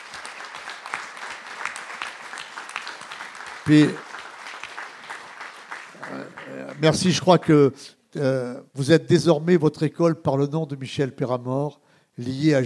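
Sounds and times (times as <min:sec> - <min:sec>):
audience applause: 0:00.0 - 0:07.2
speech: 0:03.7 - 0:04.0, 0:06.8 - 0:12.6.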